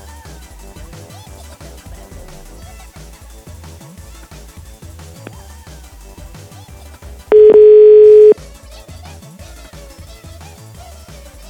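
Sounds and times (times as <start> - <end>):
telephone dial tone: 7.4 - 8.4.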